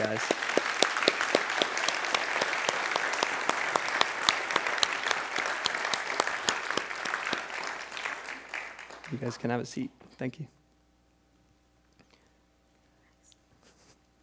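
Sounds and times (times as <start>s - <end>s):
audience applause: 0.0s - 9.9s
speech: 0.1s - 0.4s, 9.2s - 10.6s.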